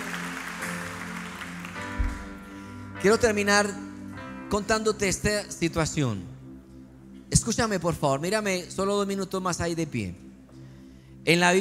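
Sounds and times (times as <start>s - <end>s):
church audience applauding: 0.0s - 2.5s
sustained low musical tones: 0.0s - 11.5s
speech: 3.0s - 3.9s, 4.5s - 6.3s, 7.3s - 10.2s, 11.2s - 11.5s.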